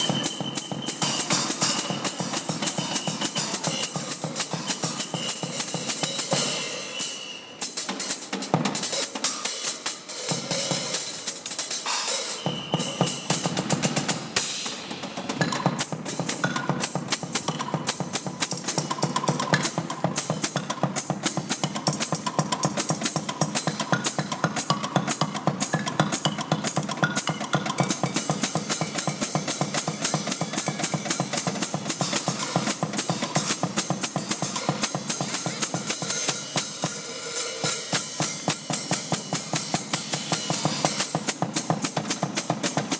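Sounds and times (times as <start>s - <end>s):
wild street drumming in Glasgow: 0.0s - 42.9s.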